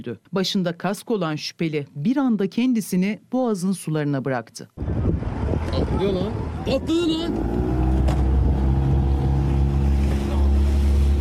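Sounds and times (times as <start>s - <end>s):
speech: 0.0s - 4.8s, 5.8s - 7.6s
motorboat engine droning at sea on the Bosphorus: 4.9s - 11.1s.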